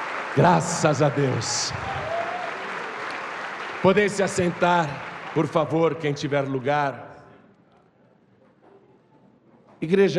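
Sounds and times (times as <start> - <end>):
audience applause: 0.0 - 7.0
speech: 0.4 - 2.0, 3.8 - 7.1, 9.8 - 10.1.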